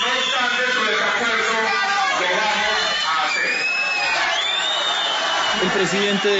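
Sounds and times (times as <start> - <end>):
crowd shouting insults at council session: 0.2 - 6.3
speech: 5.8 - 6.3.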